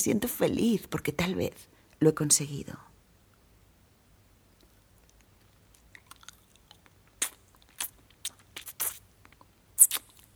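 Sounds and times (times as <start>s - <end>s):
speech: 0.0s - 2.9s
wet sucking mouth sounds on a pencil tip: 5.8s - 10.3s.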